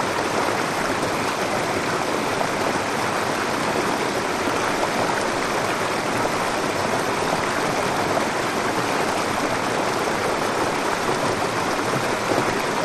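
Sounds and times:
medium waterfall: 0.0 - 12.8.

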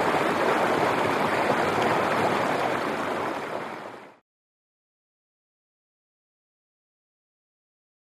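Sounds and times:
large fast stream: 0.0 - 4.2.

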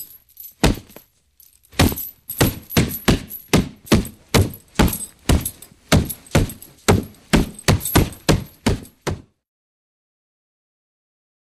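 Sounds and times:
punch on boxing heavy bag: 0.0 - 1.0, 1.7 - 9.3.

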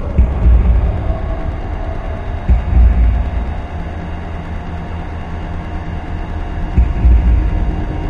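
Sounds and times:
dense vitals thumping: 0.2 - 1.6, 2.4 - 4.0, 6.8 - 7.9.

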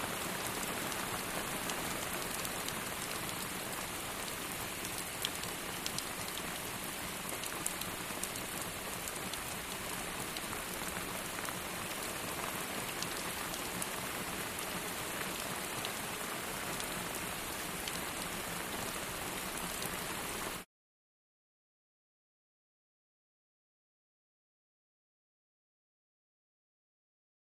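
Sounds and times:
medium heavy rain outdoors: 0.0 - 20.6.

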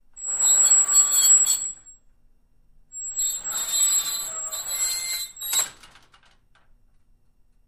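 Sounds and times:
very squeaky double accordion sliding metal door opening and closing: 0.2 - 1.9, 3.0 - 6.2.

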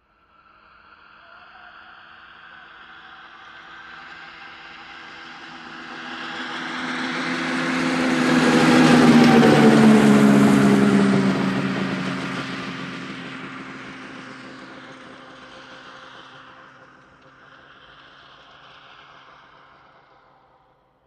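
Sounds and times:
snowmobile 550cc engine at medium speed: 4.8 - 18.8.

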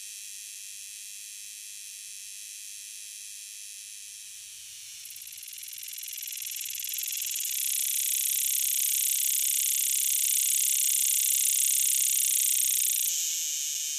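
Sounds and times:
cicada buzzing: 3.6 - 13.9.

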